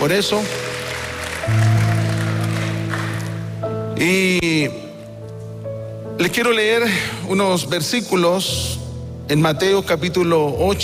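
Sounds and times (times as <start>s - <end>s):
speech: 0.0s - 0.7s, 1.5s - 1.8s, 4.0s - 4.8s, 6.2s - 10.8s
audience applauding: 0.0s - 3.6s.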